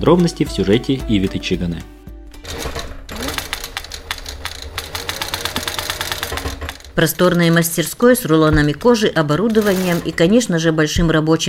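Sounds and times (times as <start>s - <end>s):
speech: 0.0s - 2.0s, 7.0s - 11.4s
leather-working sewing machine running: 2.4s - 10.5s.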